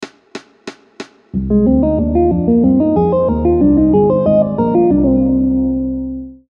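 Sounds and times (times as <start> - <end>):
triad chord: 1.4 - 6.4.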